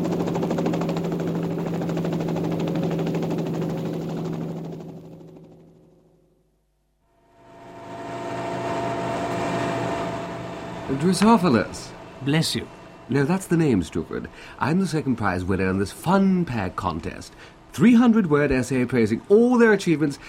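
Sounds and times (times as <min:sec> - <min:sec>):
helicopter engine taking off: 0:00.0 - 0:06.4, 0:07.2 - 0:14.8
speech: 0:10.9 - 0:20.2.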